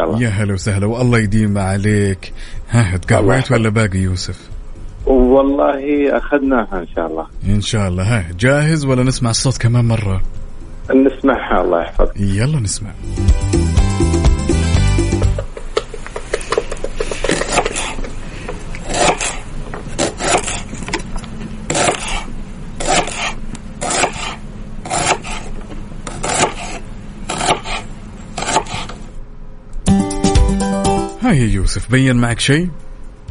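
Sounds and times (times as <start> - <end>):
speech: 0.0 - 4.6, 5.3 - 13.8, 31.3 - 32.9
music: 13.0 - 15.5, 29.8 - 31.2
lettuce being chopped with a knife: 16.2 - 18.1, 18.8 - 19.4, 20.0 - 20.7, 21.7 - 25.5, 26.1 - 28.9.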